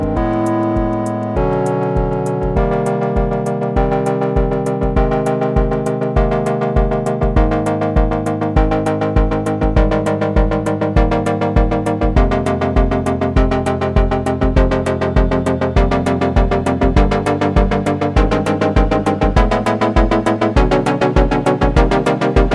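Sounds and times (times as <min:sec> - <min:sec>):
synthesizer chord sequence with clocked LFO: 0:00.0 - 0:22.5.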